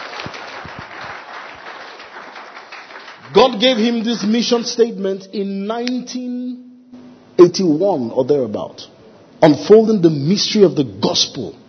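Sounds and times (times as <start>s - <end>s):
audience clapping: 0.0s - 4.6s
speech: 3.3s - 6.6s, 7.4s - 11.6s.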